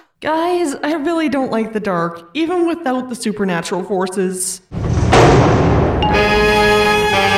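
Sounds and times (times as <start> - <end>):
speech: 0.3 - 5.4
door slamming shut: 4.7 - 7.2.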